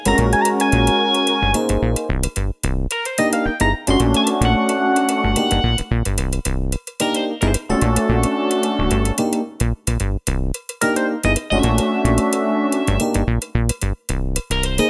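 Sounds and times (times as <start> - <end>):
funk in seven-four on electronic drums: 0.0 - 14.8.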